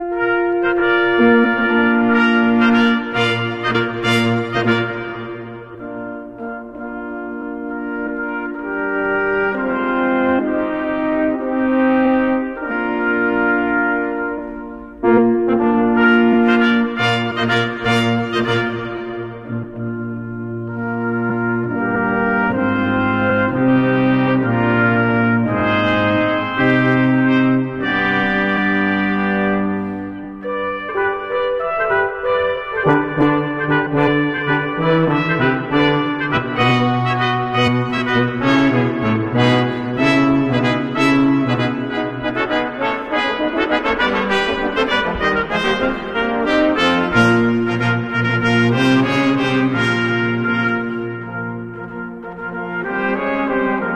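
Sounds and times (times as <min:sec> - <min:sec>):
brass ensemble: 0:00.0 - 0:53.9.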